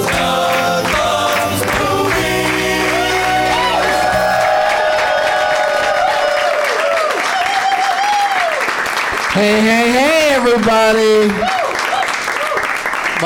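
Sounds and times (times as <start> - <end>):
audience clapping at a live show: 0.0 - 13.2
audience whooping and shouting at a live show: 2.7 - 8.6
speech: 9.4 - 9.8, 10.6 - 11.5.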